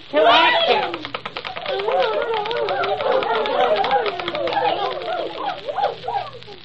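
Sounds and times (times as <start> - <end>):
laughter: 0.2 - 6.6
woodpeckers pecking at toadstools: 0.2 - 6.6
birds twittering and chirping: 0.9 - 6.6.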